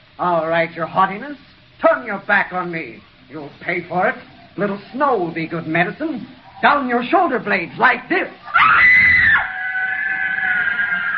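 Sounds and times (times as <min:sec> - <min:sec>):
speech: 0:00.2 - 0:09.0
woman screaming with rage: 0:08.5 - 0:11.1.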